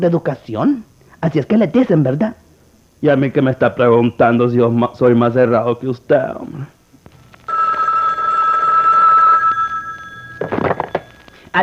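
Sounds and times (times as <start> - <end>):
speech: 0.0 - 2.4, 3.0 - 6.8
telephone ringing: 7.2 - 11.6.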